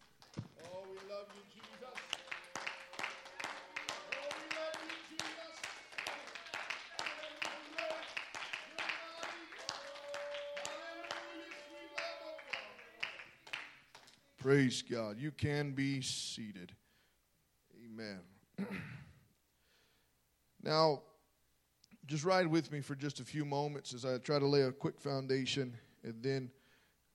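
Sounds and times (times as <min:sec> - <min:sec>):
audience hand clapping in praise: 0:00.0 - 0:14.6
speech: 0:14.4 - 0:16.8, 0:20.7 - 0:21.1, 0:22.1 - 0:26.6.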